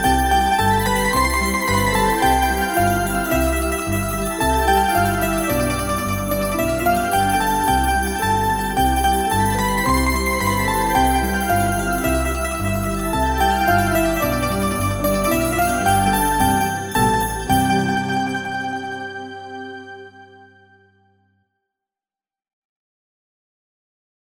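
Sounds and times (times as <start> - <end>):
triangles: 0.0 - 18.0.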